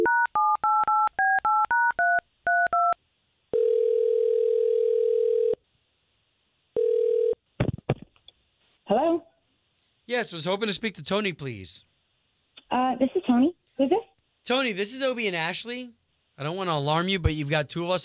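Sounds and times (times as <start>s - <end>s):
telephone ringback tone: 0.0s - 5.6s, 6.8s - 7.4s
speech: 10.1s - 11.9s, 12.9s - 18.0s.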